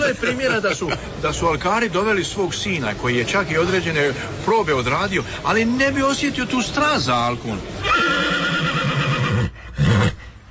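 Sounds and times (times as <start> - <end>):
laughter: 0.0 - 1.1
speech: 0.1 - 8.4
horse used in the Alka riding tournament neighing: 7.8 - 10.2.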